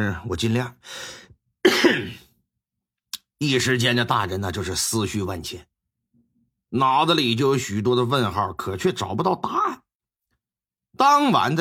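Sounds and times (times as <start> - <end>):
speech: 0.0 - 2.2, 3.4 - 5.7, 6.7 - 9.8, 11.0 - 11.5
coughing: 1.6 - 2.4.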